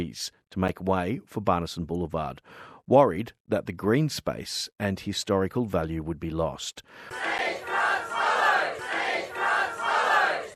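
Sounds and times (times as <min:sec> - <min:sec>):
speech: 0:00.0 - 0:07.8
protest crowd at Frog Hollow in Darwin CBD: 0:07.0 - 0:10.5.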